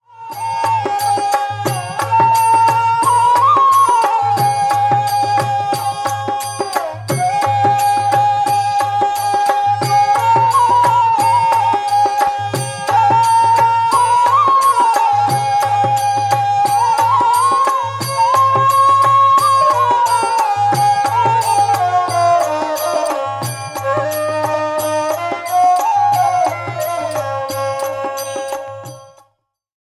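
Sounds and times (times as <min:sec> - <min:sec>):
devotional instrumental music: 0:00.4 - 0:29.1.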